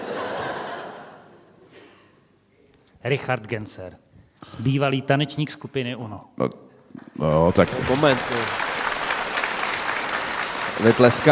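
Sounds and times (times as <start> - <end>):
laughter: 0.0 - 1.5
speech: 3.0 - 8.6, 10.8 - 11.3
audience clapping: 7.3 - 11.3.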